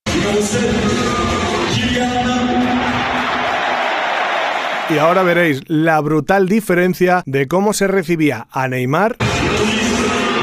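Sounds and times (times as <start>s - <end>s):
speech: 0.2s - 1.1s, 4.9s - 9.7s
PSG fans in stadium applauding player introduction: 1.1s - 5.4s.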